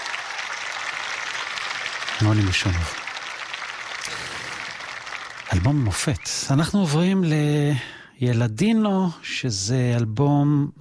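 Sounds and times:
crowd applause: 0.0s - 6.7s
speech: 2.2s - 3.0s, 5.5s - 10.8s.

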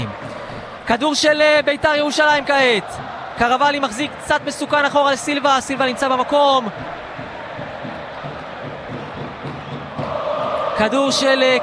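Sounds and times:
speech: 0.9s - 7.0s, 10.8s - 11.6s
football crowd in yellow and black chanting: 2.2s - 5.4s, 6.2s - 11.6s.

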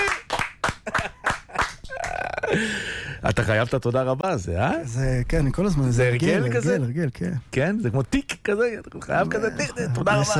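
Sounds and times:
audience clapping: 0.0s - 2.2s
speech: 2.5s - 10.3s.

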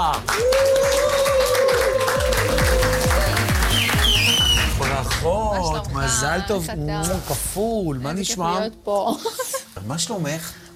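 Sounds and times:
audience applause: 0.0s - 6.4s
speech: 5.2s - 10.7s.

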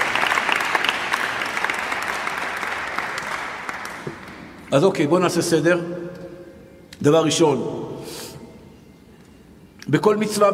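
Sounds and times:
enthusiastic audience applause: 0.0s - 4.5s
speech: 4.1s - 6.0s, 7.0s - 7.9s, 9.9s - 10.5s.

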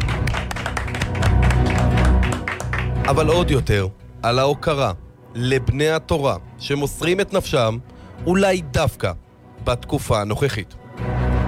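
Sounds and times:
applause: 0.0s - 3.6s
speech: 3.1s - 11.1s.

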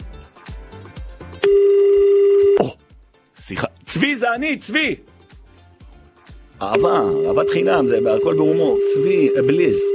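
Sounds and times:
telephone ringing: 1.4s - 2.6s, 6.7s - 9.9s
speech: 2.6s - 2.8s, 3.5s - 5.1s, 6.6s - 9.9s.

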